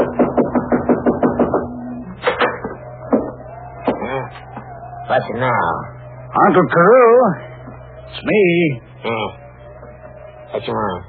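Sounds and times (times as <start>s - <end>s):
knocking on a door: 0.0s - 1.7s
speech: 5.1s - 7.5s, 8.1s - 9.4s, 10.5s - 11.0s.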